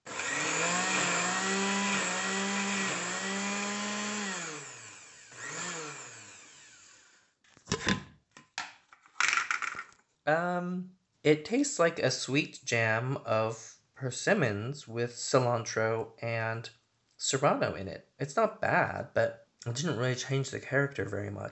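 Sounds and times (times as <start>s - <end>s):
blender pureeing vegetables and tomato: 0.0s - 7.3s
speech: 10.3s - 21.4s.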